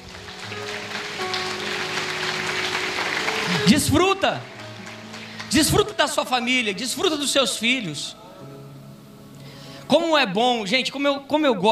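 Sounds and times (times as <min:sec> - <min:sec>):
audience applauding: 0:00.0 - 0:06.6
speech: 0:03.6 - 0:04.6, 0:05.5 - 0:08.5, 0:09.9 - 0:11.7.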